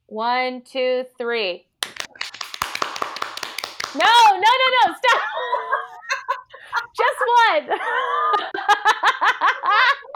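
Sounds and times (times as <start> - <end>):
speech: 0.2 - 1.7, 3.9 - 5.7, 7.0 - 10.1
group of people clapping: 1.8 - 4.3.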